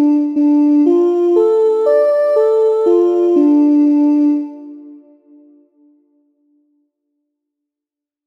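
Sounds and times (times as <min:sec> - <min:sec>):
melodic minor scale exercise: 0:00.0 - 0:05.6.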